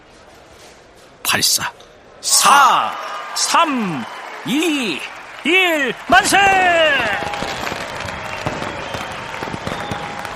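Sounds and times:
speech: 1.3 - 7.5
applause bursting out on the street: 2.7 - 10.3.

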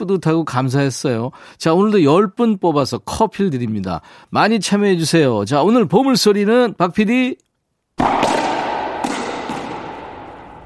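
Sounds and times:
speech: 0.0 - 8.4
squash ball being hit: 8.0 - 10.6.

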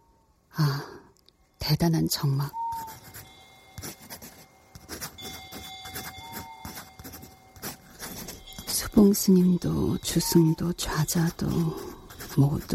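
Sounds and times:
faint steady tone: 0.0 - 12.7
speech: 1.7 - 3.0, 9.0 - 12.7
pencil scratching across notebook paper: 2.7 - 12.7.

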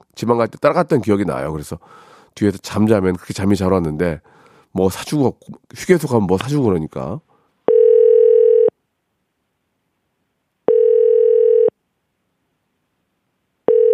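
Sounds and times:
speech: 0.2 - 7.3
ringback tone of an outgoing phone call: 7.7 - 8.7, 10.7 - 11.7, 13.7 - 13.9.

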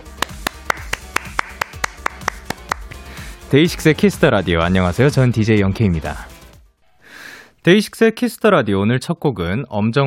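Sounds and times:
applause: 0.0 - 3.0
speech: 3.5 - 6.3, 7.6 - 10.0.

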